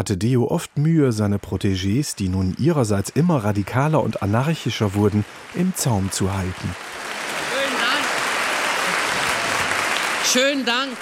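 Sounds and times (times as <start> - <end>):
speech: 0.0 - 7.2, 10.3 - 10.9
applause: 2.6 - 10.9.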